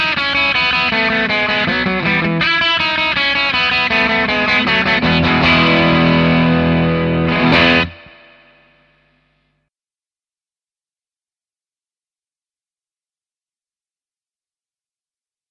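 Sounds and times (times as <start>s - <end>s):
Jazzmaster electric guitar bridge pickup: 0.0s - 9.1s.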